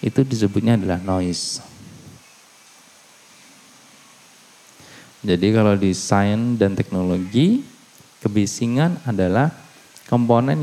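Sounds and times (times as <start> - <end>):
speech: 0.0 - 1.8, 5.2 - 10.6
faint rain outside: 0.0 - 10.6.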